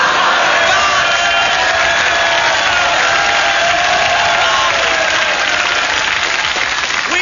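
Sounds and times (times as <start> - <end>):
studio audience clapping: 0.0 - 7.2
studio audience whoops: 0.6 - 6.2.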